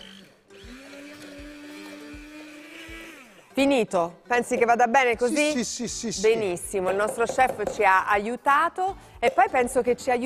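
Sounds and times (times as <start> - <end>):
blender pureeing beans: 0.0 - 3.6
speech: 3.6 - 10.2.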